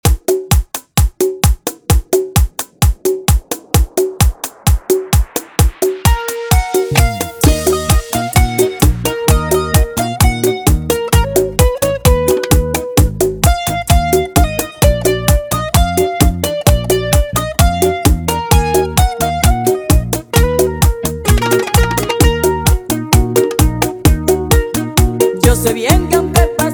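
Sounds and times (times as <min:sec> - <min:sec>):
bachata music: 0:00.0 - 0:26.7.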